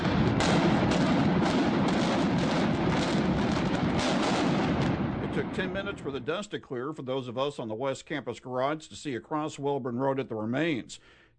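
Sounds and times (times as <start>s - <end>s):
dynamite explosions from a stadium demolition: 0.0s - 6.6s
speech: 5.6s - 11.3s.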